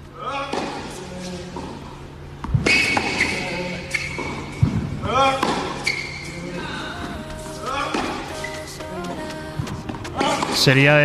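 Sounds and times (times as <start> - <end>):
tennis balls being struck in a training session: 0.3 - 1.8, 2.4 - 6.6, 7.6 - 8.4, 9.0 - 10.7.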